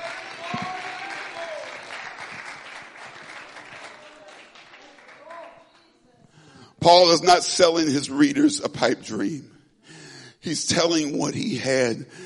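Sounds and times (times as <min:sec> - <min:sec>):
audience clapping: 0:00.0 - 0:05.9
speech: 0:06.8 - 0:09.5, 0:10.4 - 0:12.2.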